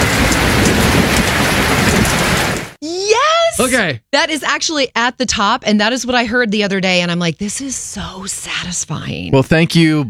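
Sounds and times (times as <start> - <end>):
rain falling: 0.0 - 2.8
speech: 3.6 - 10.0.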